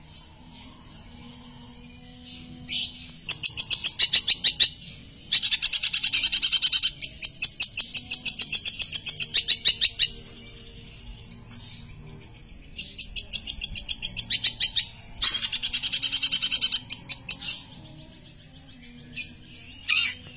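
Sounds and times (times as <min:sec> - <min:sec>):
long-tailed shrike chattering song: 0:00.0 - 0:20.3.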